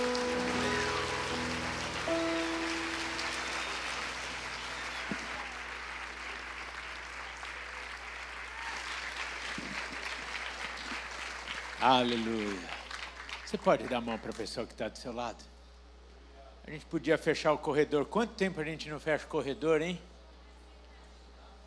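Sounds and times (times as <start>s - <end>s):
sustained tones: 0.0s - 6.6s
audience applause: 0.0s - 14.4s
speech: 11.8s - 12.8s, 13.5s - 15.5s, 16.7s - 20.1s.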